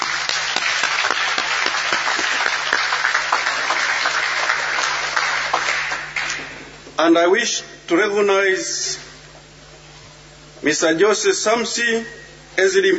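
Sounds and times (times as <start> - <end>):
crowd applauding: 0.0 - 6.7
speech: 7.0 - 9.0, 10.6 - 12.9.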